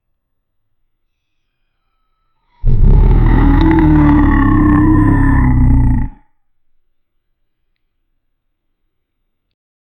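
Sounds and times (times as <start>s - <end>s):
dinosaur beast cry: 2.6s - 6.2s.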